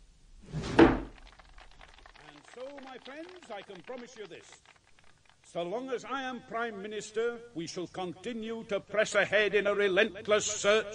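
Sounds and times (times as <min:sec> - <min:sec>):
window pushed open: 0:00.5 - 0:01.2
speech: 0:03.0 - 0:04.8, 0:05.5 - 0:10.9.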